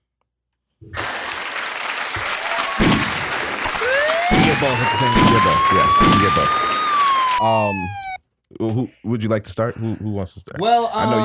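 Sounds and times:
crowd applause: 1.0 - 8.2
speech: 4.6 - 6.7, 7.4 - 8.0, 8.6 - 11.2.

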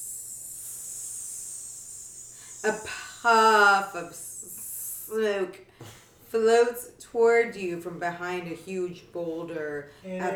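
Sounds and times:
high-pitched hiss: 0.0 - 5.2
speech: 2.6 - 4.3, 5.1 - 10.3.

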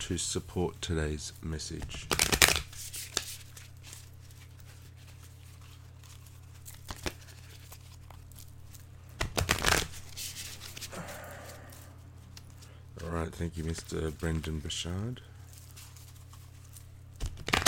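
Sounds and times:
speech: 0.0 - 2.2, 13.5 - 15.4
cards riffling: 1.8 - 14.5, 15.4 - 17.6.

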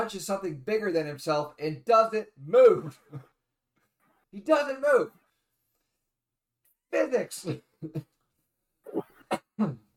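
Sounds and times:
speech: 0.0 - 3.3, 4.3 - 5.2, 6.9 - 8.1, 8.9 - 9.8
man coughing: 8.9 - 9.9.

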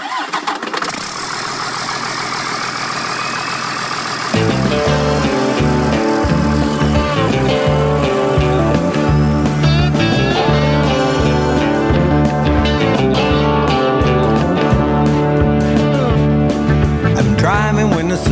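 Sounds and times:
big truck engine cranking and idling: 0.9 - 18.2
music with a driving beat: 4.4 - 18.3.

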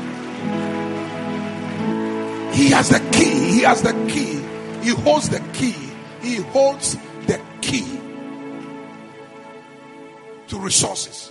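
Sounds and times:
crowd clapping: 0.0 - 5.8
sustained musical tone: 0.0 - 10.4
speech: 2.6 - 8.0, 10.5 - 11.2.

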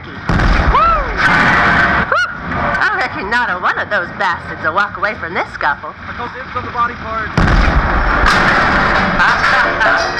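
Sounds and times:
very big gun firing: 0.3 - 2.0, 7.4 - 9.3
speech: 3.4 - 10.1.

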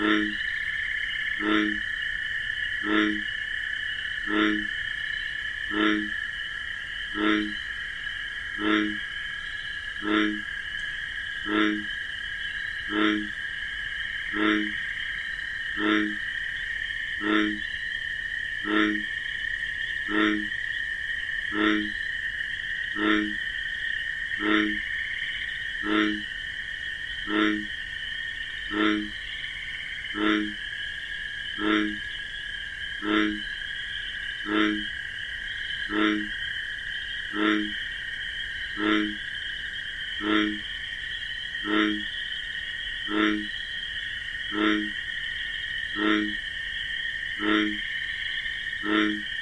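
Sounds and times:
bullfrog croaking: 0.0 - 49.4
cricket trilling: 0.0 - 49.4.

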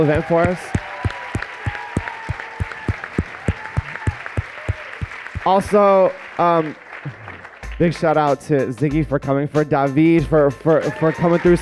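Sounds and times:
speech: 0.0 - 0.8, 5.5 - 7.2, 7.8 - 11.5
audience round of applause: 0.0 - 7.8.

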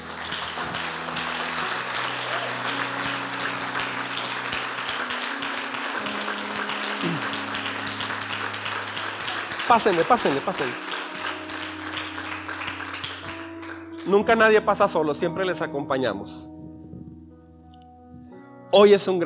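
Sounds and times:
audience applause: 0.0 - 14.3
speech: 9.7 - 10.9, 14.1 - 16.5, 18.7 - 19.2.

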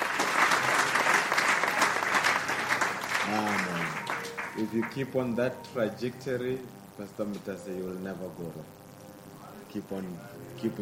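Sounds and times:
audience applause: 0.0 - 5.2
speech: 3.3 - 3.8, 4.6 - 8.8, 9.7 - 10.7.

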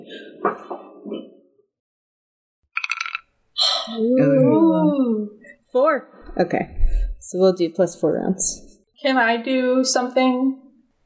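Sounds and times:
physical dice being rolled: 2.8 - 3.3
speech: 3.9 - 4.5, 5.7 - 10.6.

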